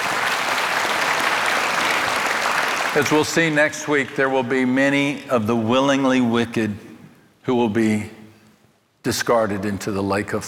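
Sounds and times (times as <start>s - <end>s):
audience applause: 0.0s - 3.6s
speech: 3.0s - 8.2s, 9.0s - 10.4s.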